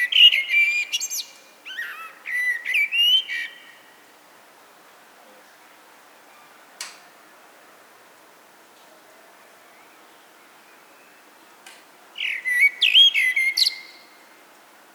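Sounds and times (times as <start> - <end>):
Eurasian blackbird singing: 0.0 - 3.9, 12.2 - 14.2.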